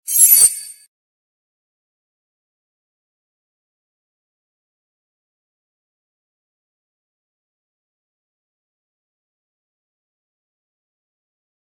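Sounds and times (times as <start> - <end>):
beep: 0.1 - 0.8.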